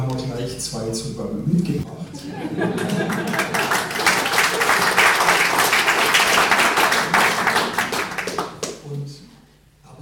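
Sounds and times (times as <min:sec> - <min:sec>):
speech: 0:00.2 - 0:03.4
laughter: 0:02.0 - 0:04.8
audience clapping: 0:02.6 - 0:08.8.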